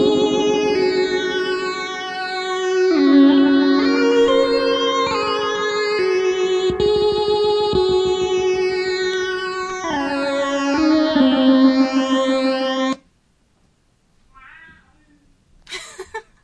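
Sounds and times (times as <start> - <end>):
stylophone through delay and phaser effects: 0.0 - 13.0.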